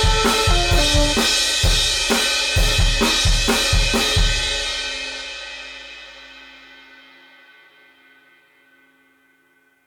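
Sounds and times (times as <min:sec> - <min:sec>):
big drum hit: 0:00.0 - 0:04.6.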